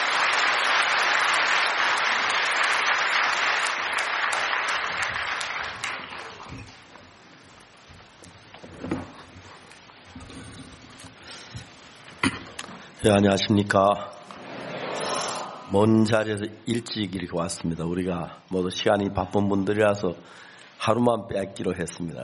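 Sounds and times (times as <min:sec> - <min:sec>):
audience applause: 0:00.0 - 0:06.5
speech: 0:13.0 - 0:14.2, 0:15.7 - 0:22.2.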